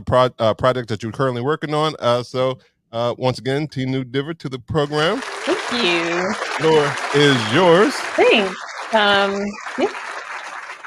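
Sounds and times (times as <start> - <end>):
laughter: 0.0 - 9.4
speech: 0.0 - 10.0
crowd applauding: 4.8 - 10.8.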